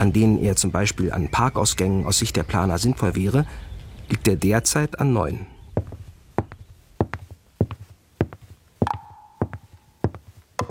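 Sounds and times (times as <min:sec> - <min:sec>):
speech: 0:00.0 - 0:05.9
footsteps walking: 0:05.6 - 0:10.6.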